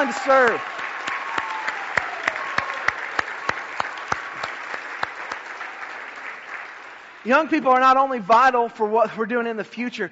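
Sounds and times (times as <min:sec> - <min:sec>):
speech: 0:00.0 - 0:00.8, 0:07.2 - 0:10.1
audience applauding: 0:00.0 - 0:07.9.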